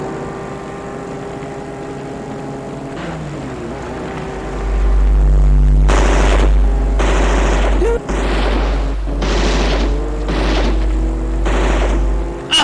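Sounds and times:
deep rumble like an idling engine: 1.4s - 12.5s
gunfire bursts: 5.9s - 12.5s.

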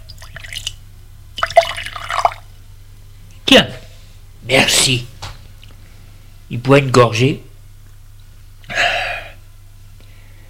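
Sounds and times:
cognac being poured into a glass: 0.0s - 0.8s, 1.4s - 2.5s
low steady hum: 0.0s - 10.4s
speech: 3.5s - 3.8s, 4.5s - 5.1s, 6.5s - 7.5s.

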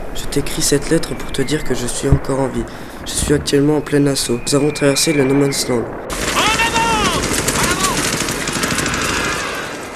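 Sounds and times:
speech: 0.2s - 6.3s
machine-gun fire on a World War I battlefield at Verdun: 2.1s - 9.9s.

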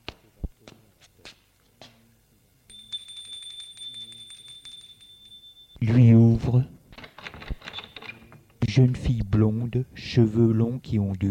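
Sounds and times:
doorbell ringing at apartment door: 2.7s - 5.8s
speech: 8.8s - 11.2s.

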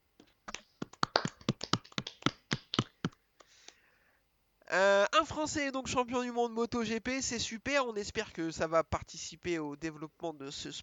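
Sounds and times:
small group applauding: 0.5s - 3.6s
speech: 4.7s - 10.8s.

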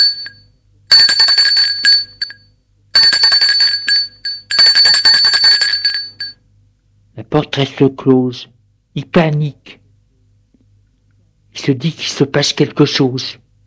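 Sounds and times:
doorbell ringing: 0.0s - 6.4s
speech: 7.3s - 9.8s, 11.6s - 13.4s.

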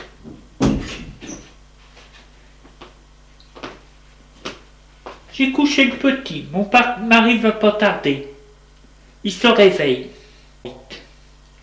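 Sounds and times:
door opening: 0.0s - 1.6s
speech: 5.4s - 8.3s, 9.2s - 10.9s.

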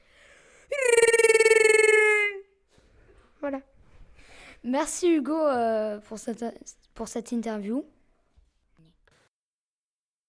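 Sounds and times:
person imitating a Wookiee's roar: 0.7s - 2.4s
speech: 4.6s - 8.0s.

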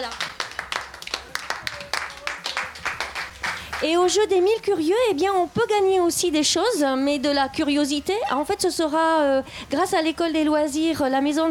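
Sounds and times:
small group applauding participants: 0.0s - 3.9s
speech: 3.8s - 11.4s.

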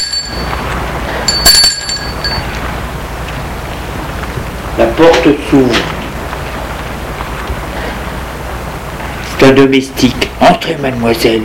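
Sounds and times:
doorbell chime: 0.0s - 2.6s
speech: 4.9s - 6.0s, 9.5s - 11.4s.

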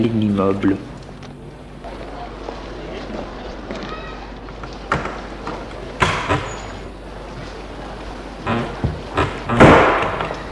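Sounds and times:
speech: 0.0s - 0.9s
steady hiss: 0.0s - 10.5s
glass door opening and closing: 4.8s - 7.0s, 8.4s - 10.5s.

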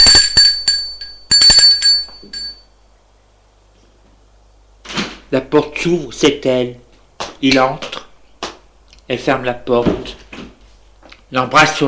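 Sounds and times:
doorbell ringing: 0.0s - 2.7s
speech: 5.3s - 6.8s, 7.4s - 7.9s, 9.1s - 10.2s, 11.3s - 11.8s.

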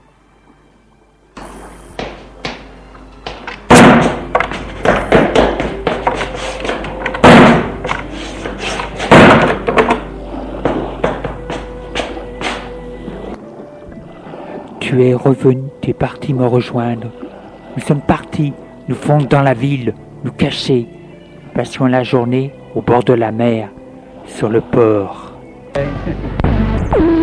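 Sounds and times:
doors and windows slamming: 3.7s - 5.9s, 6.7s - 8.0s, 9.0s - 11.7s
speech: 14.9s - 17.2s, 17.8s - 21.0s, 21.6s - 27.2s.

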